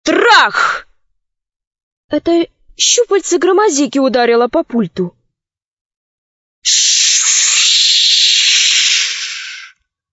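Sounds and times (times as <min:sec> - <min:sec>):
speech: 0:00.1 - 0:00.9, 0:02.1 - 0:05.2, 0:06.6 - 0:07.0
hissing of a machine system: 0:06.6 - 0:09.8.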